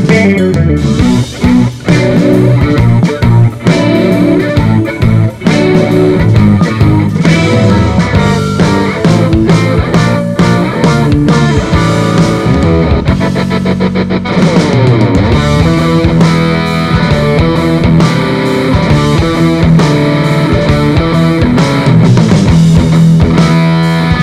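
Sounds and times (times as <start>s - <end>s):
Les Paul electric guitar through G12H speaker amplifier: 0.0s - 24.2s.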